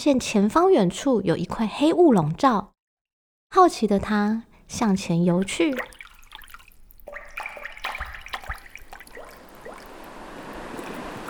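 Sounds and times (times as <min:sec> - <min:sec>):
speech: 0:00.0 - 0:02.7, 0:03.5 - 0:06.0
growing sea waves: 0:05.4 - 0:11.2
rain: 0:09.2 - 0:11.2.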